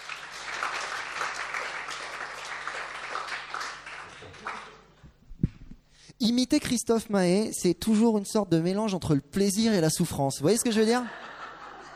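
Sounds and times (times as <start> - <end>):
audience applause: 0.0 - 4.8
speech: 6.2 - 11.2
laughter: 11.0 - 11.9.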